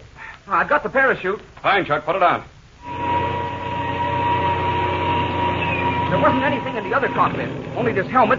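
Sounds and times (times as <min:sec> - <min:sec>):
speech: 0:00.5 - 0:03.0, 0:06.2 - 0:08.3
airplane engine starting up: 0:02.8 - 0:08.3.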